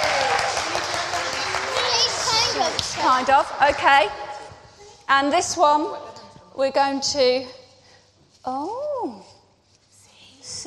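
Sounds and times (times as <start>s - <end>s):
round of applause: 0.0s - 3.7s
speech: 2.9s - 4.2s, 5.1s - 7.6s, 8.4s - 9.2s, 10.5s - 10.6s.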